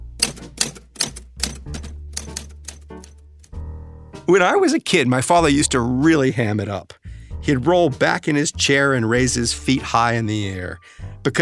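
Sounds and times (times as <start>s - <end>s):
typewriter typing: 0.2s - 3.1s
speech: 4.3s - 11.4s.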